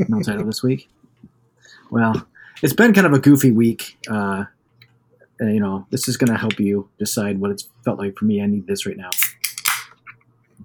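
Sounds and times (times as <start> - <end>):
speech: 0.0 - 1.0, 1.6 - 4.6, 5.4 - 9.4
beer being cracked open: 9.1 - 10.0.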